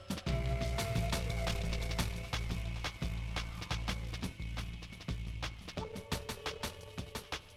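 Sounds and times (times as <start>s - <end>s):
weedy bass drum: 0.3s - 7.3s.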